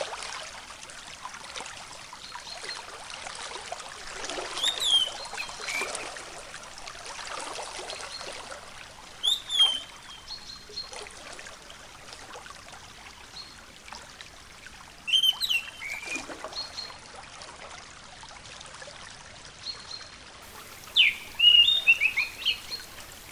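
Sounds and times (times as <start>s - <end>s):
orange-headed thrush song: 4.6s - 5.9s, 9.2s - 9.9s, 15.1s - 16.0s, 20.5s - 23.2s.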